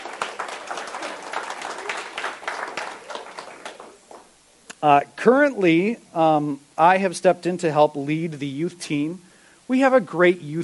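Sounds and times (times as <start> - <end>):
audience clapping: 0.0 - 4.4
speech: 4.8 - 10.6.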